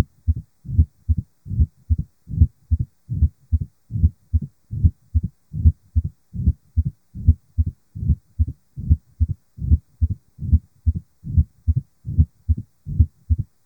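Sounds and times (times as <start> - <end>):
diastolic heart murmur at apex via stethoscope bell, left lateral decubitus: 0.0 - 13.6.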